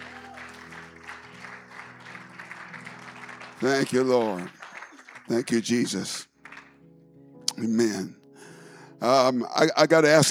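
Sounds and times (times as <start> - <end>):
audience applause: 0.0 - 6.8
speech: 3.6 - 4.6, 5.3 - 6.3, 7.6 - 8.2, 9.0 - 10.2.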